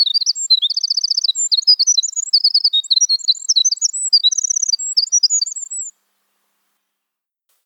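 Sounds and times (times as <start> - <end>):
winter wren singing: 0.0 - 6.1.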